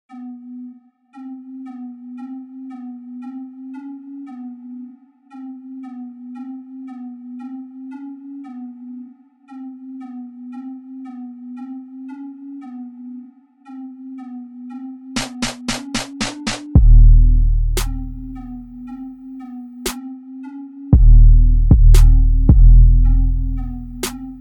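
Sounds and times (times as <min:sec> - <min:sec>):
trap beat: 0:15.2 - 0:18.8, 0:21.0 - 0:24.3.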